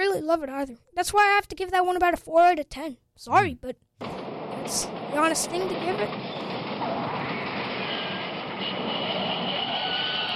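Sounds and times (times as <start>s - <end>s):
speech: 0.2s - 6.6s
faint high metallic whines: 4.0s - 10.3s
freight train rolling past: 4.0s - 10.3s.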